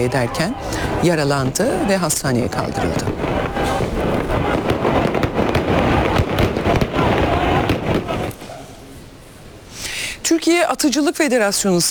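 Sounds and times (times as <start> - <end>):
speech: 0.0 - 4.5, 10.4 - 11.8
fireworks set off at celebrations: 0.0 - 8.5.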